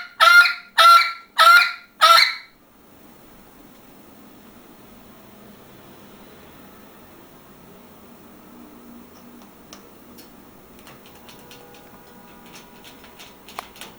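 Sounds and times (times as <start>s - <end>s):
parrot giving loud grating calls: 0.0s - 2.6s.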